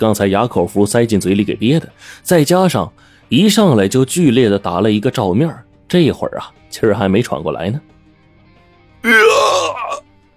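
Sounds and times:
speech: 0.0 - 7.9, 9.0 - 10.1
man's anguished scream of pain: 9.0 - 10.0.

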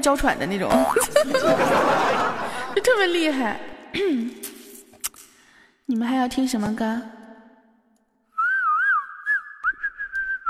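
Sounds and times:
speech: 0.0 - 4.5, 5.9 - 7.2
laughter: 1.0 - 3.6
person whistling a tune: 8.3 - 10.4.

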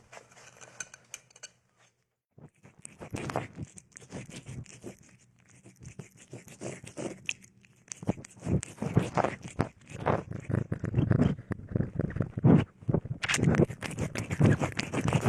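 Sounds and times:
cat chewing: 2.5 - 12.7, 13.3 - 15.2.

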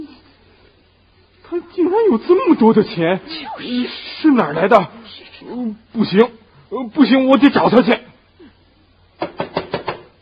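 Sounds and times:
speech: 1.5 - 8.0
knocking on a door: 9.2 - 10.1.

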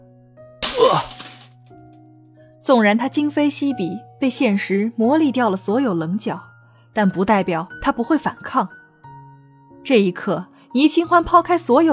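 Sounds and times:
glass shards tinkling: 0.6 - 1.6
glass wine bottle smashing on a head: 0.6 - 1.7
speech: 2.6 - 8.8, 9.9 - 11.9.

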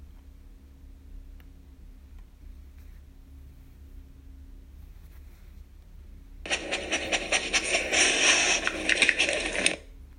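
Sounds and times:
dog sniffing and snuffling: 6.5 - 9.8.

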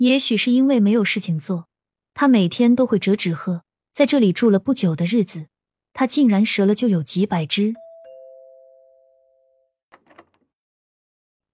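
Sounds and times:
speech: 0.0 - 7.8
doorbell ringing: 7.8 - 10.3.

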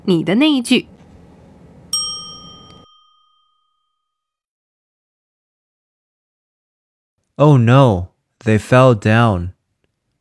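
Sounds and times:
speech: 0.0 - 0.9, 7.4 - 9.6
ding chime: 1.9 - 4.4.

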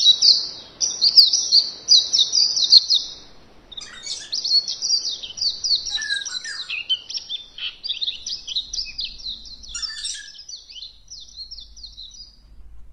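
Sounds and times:
birds chirping and trilling: 0.2 - 12.9
faint low rumble: 2.8 - 12.9.

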